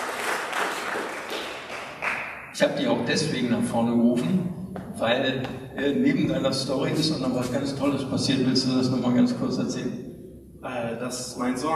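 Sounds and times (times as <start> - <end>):
audience applause greeting a speaker called up to the front: 0.0 - 2.3
speech: 2.6 - 10.1, 10.7 - 11.7.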